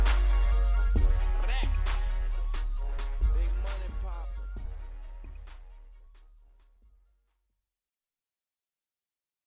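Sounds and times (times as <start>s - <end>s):
low bass: 0.0s - 6.6s.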